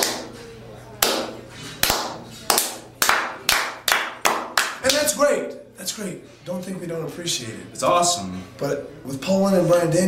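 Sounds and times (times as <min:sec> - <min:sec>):
hand clapping: 0:00.0 - 0:00.4, 0:01.0 - 0:05.2
speech: 0:05.1 - 0:10.0.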